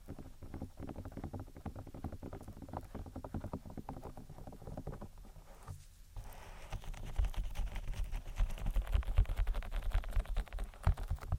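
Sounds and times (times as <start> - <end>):
close-miked soft rubbing and tapping: 0.0 - 11.3.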